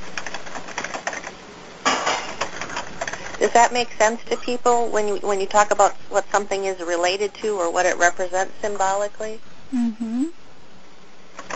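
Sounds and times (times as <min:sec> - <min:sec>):
typing on a computer keyboard: 0:00.1 - 0:01.4
speech: 0:03.4 - 0:10.4.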